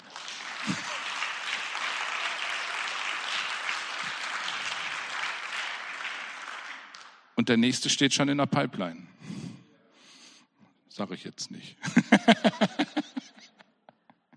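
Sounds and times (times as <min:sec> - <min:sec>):
audience applause: 0:00.0 - 0:07.2
laughter: 0:00.5 - 0:01.8, 0:11.8 - 0:13.7
speech: 0:07.4 - 0:09.1, 0:11.0 - 0:13.0.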